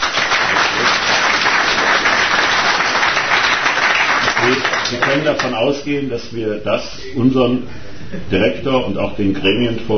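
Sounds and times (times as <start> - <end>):
audience clapping: 0.0 - 5.6
speech: 4.5 - 9.9.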